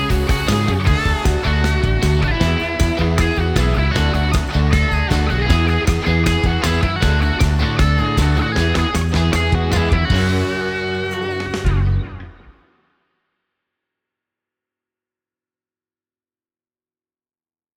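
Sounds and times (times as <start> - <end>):
rock guitar: 0.0 - 12.8.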